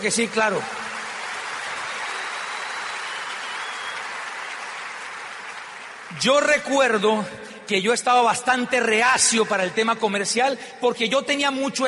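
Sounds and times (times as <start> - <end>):
speech: 0.0 - 0.9, 6.2 - 11.8
applause: 0.0 - 7.0.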